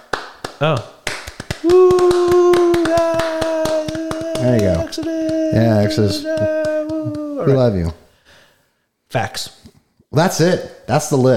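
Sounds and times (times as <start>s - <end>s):
clap sound effect: 0.0s - 7.4s
speech: 0.6s - 1.0s, 1.6s - 2.3s, 4.4s - 6.7s, 7.4s - 8.0s, 9.1s - 11.3s.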